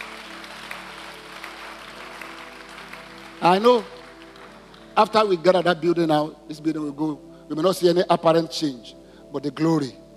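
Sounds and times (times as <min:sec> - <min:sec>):
audience clapping hands: 0:00.0 - 0:05.5
speech: 0:03.4 - 0:04.0, 0:05.0 - 0:10.0.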